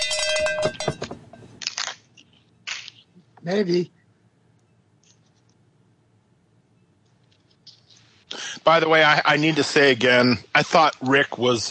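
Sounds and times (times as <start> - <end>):
cowbell being struck: 0.0 - 1.1
speech: 3.4 - 4.0, 8.7 - 11.6.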